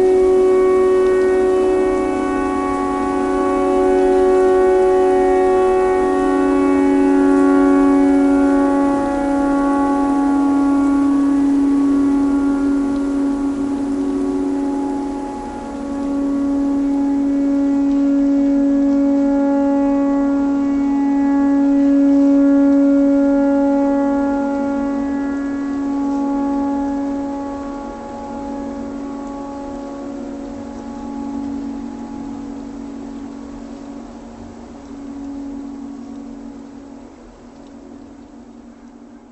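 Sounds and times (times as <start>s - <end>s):
pentatonic tornado siren: 0.0s - 39.3s.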